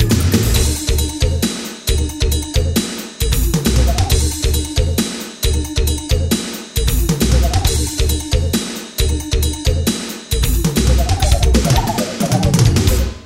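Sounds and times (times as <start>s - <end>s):
jungle beat on a Roland R-8 drum machine: 0.0s - 13.2s.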